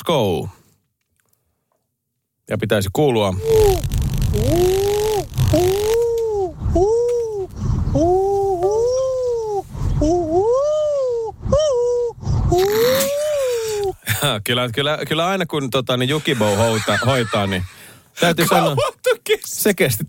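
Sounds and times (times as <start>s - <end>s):
speech: 0.1s - 0.6s, 2.5s - 4.8s, 5.5s - 5.9s, 14.2s - 19.0s, 19.6s - 20.0s
person imitating an owl call: 3.4s - 14.0s
low rumble: 3.5s - 12.7s
laughter: 16.1s - 18.8s.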